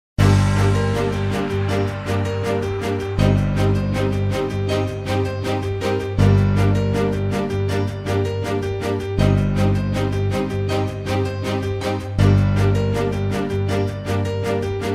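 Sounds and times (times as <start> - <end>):
hip hop music: 0.2 - 14.9.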